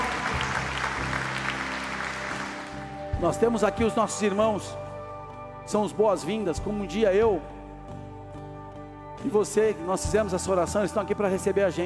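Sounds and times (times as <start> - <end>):
audience applause: 0.0 - 3.0
speech: 3.2 - 4.8, 5.7 - 7.6, 9.2 - 11.8.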